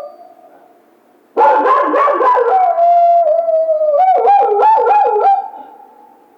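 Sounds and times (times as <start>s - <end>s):
coyote howling: 1.4s - 5.8s.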